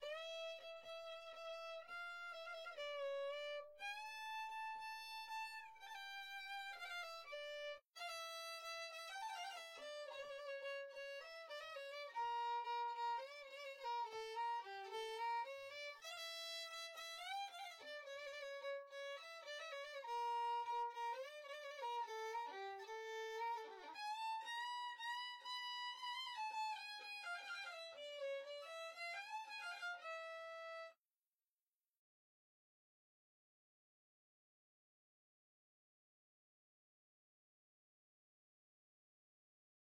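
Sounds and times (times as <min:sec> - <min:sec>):
viola: 0:00.0 - 0:31.0.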